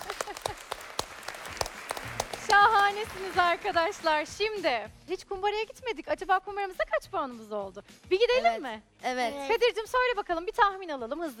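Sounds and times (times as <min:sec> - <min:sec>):
children clapping in a classroom quiz game: 0:00.0 - 0:04.4
speech: 0:02.9 - 0:11.3.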